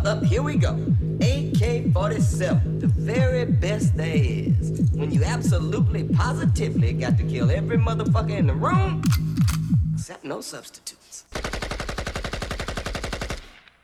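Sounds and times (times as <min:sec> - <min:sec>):
speech: 0:00.1 - 0:09.3, 0:10.1 - 0:11.1
AK-47 rifle automatic gunfire: 0:11.3 - 0:13.6.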